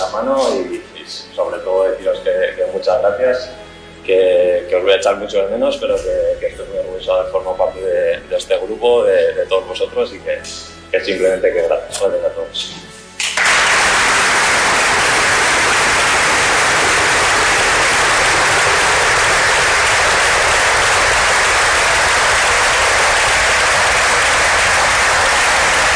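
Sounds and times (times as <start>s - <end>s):
speech: 0.2s - 13.6s
colleagues applauding: 13.2s - 25.9s.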